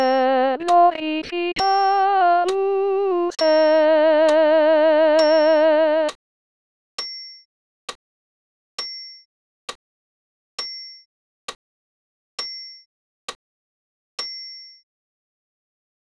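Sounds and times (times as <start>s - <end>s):
alto voice singing solo: 0.0s - 6.1s.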